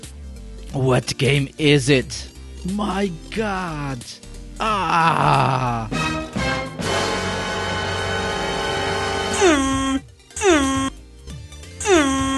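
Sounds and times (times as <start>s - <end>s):
speech: 0.7s - 6.2s, 9.4s - 9.8s
air horn blast: 6.8s - 10.9s.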